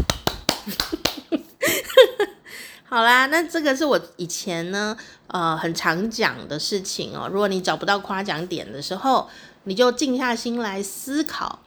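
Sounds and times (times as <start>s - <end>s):
hand clapping: 0.0s - 1.4s
speech: 0.7s - 1.0s, 2.9s - 11.6s.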